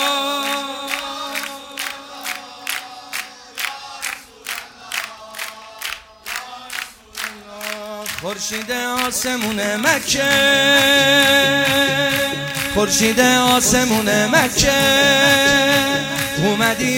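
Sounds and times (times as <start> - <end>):
crowd at a religious gathering clapping in unison: 0.0 - 16.9
speech: 8.2 - 12.0, 12.8 - 16.9.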